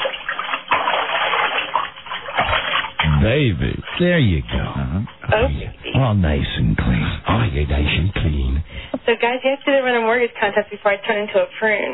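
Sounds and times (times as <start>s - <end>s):
water splashing and sloshing in a bathtub during a rinse: 0.0s - 9.8s
speech: 3.2s - 11.9s.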